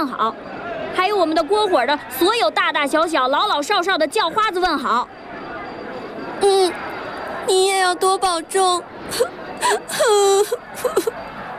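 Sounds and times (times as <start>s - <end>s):
speech: 0.0s - 5.2s, 6.4s - 6.8s, 7.5s - 11.4s
woman crying: 9.1s - 11.2s.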